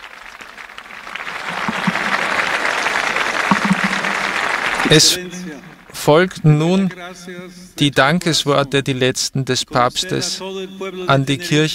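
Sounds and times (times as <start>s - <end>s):
jubilant crowd cheering: 0.0s - 5.9s
speech: 4.8s - 5.4s, 6.0s - 11.7s.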